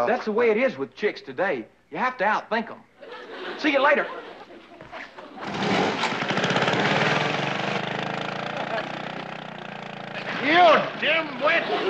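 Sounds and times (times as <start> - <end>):
speech: 0.0 - 4.3, 10.4 - 11.8
laughter: 3.0 - 6.3, 8.3 - 9.6, 11.0 - 11.8
small motor scooter engine starting and driving off: 5.3 - 11.8.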